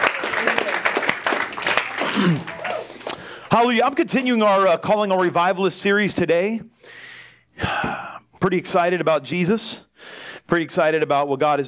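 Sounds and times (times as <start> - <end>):
audience clapping: 0.0 - 4.0
speech: 2.2 - 2.5, 3.5 - 7.7, 8.4 - 11.6.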